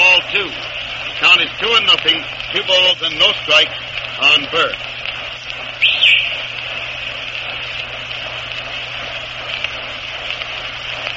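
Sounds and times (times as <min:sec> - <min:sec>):
speech: 0:01.6 - 0:05.0
shrill coach's whistle at baseball game: 0:05.8 - 0:06.5.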